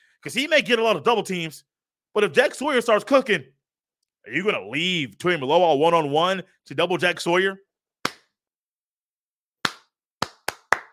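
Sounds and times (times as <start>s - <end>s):
speech: 0.2s - 3.6s, 4.2s - 7.6s
hand clapping: 8.0s - 8.3s, 9.6s - 10.9s.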